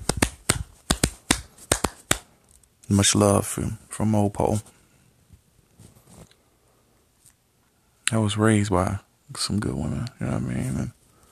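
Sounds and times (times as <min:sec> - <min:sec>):
hand clap: 0:00.0 - 0:02.3
speech: 0:02.9 - 0:04.8, 0:08.1 - 0:11.0.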